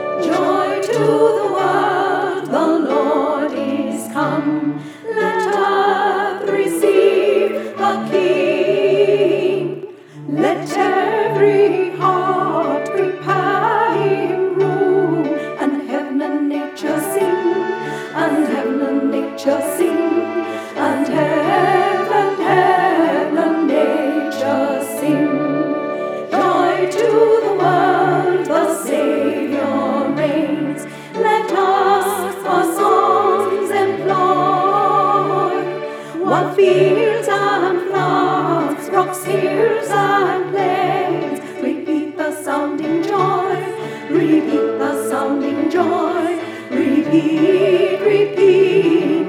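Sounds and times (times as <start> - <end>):
alto voice singing a carol: 0.1 - 49.2.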